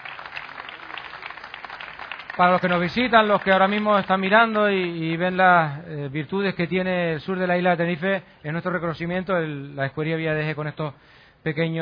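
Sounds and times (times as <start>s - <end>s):
applause: 0.0s - 5.0s
speech: 2.4s - 11.7s.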